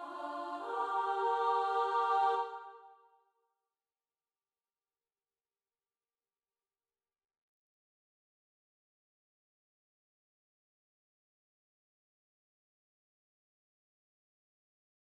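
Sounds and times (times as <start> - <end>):
alto section of a choir singing: 0.0 - 3.0.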